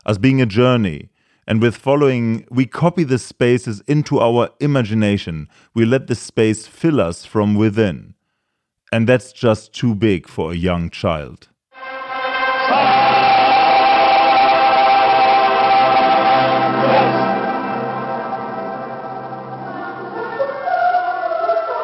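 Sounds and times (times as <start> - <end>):
speech: 0.0 - 8.2, 8.9 - 12.0
choir singing in the Cathedral of Bremen: 11.8 - 21.8.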